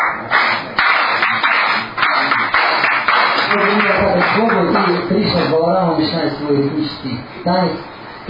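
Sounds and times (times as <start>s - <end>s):
rhythmic hand clapping: 0.0s - 5.6s
crowd noise: 0.0s - 8.2s
speech: 3.6s - 8.2s.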